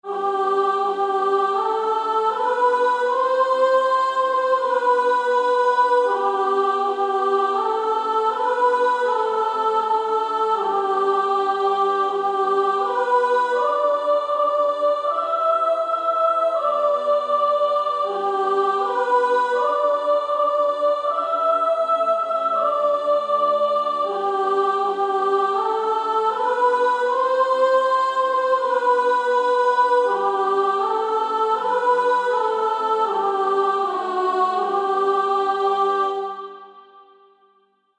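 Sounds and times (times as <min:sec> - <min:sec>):
female choir soprano section singing: 0:00.0 - 0:37.3.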